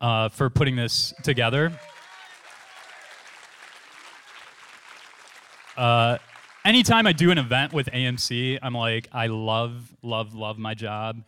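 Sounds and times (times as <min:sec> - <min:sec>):
speech: 0:00.0 - 0:01.9, 0:05.8 - 0:11.2
crowd applause: 0:01.1 - 0:09.0.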